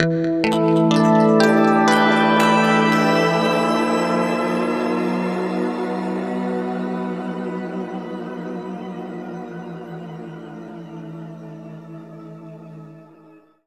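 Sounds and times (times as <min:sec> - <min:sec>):
guitar harmonic: 0:00.0 - 0:08.4.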